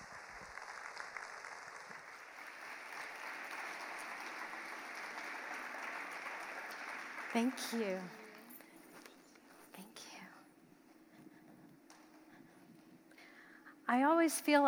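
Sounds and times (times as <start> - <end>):
crowd applause: 0.0 - 9.1
speech: 7.4 - 8.2, 13.9 - 14.6.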